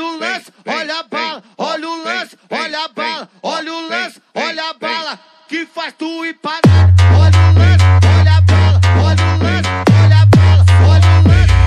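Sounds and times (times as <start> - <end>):
funk bass: 6.6 - 11.6.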